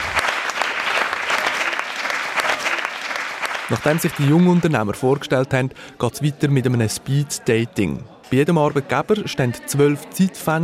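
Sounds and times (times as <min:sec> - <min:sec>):
audience applause: 0:00.0 - 0:05.0
speech: 0:03.7 - 0:10.6.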